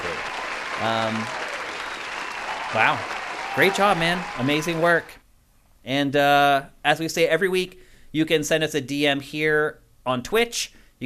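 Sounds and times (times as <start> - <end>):
applause: 0.0 - 5.2
short cheer or horn: 0.0 - 5.2
speech: 0.8 - 1.4, 2.7 - 5.2, 5.8 - 11.0.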